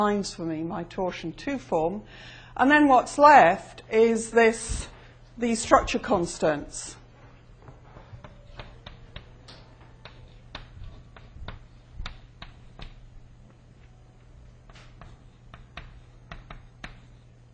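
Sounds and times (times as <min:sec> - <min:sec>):
speech: 0:00.0 - 0:07.0
handwriting while working out equations in a physics lecture: 0:10.0 - 0:13.0, 0:14.7 - 0:17.5.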